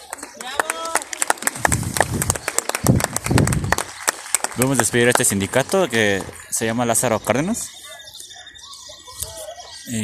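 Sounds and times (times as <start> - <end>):
crowd applause: 0.0 - 7.6
voices murmuring and cheering: 0.0 - 10.0
speech: 4.6 - 7.8, 9.9 - 10.0.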